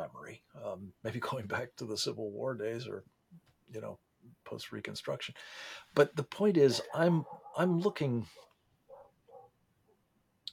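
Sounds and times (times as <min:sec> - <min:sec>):
speech: 0:00.3 - 0:08.5
dog barking: 0:06.8 - 0:07.7, 0:08.3 - 0:09.6.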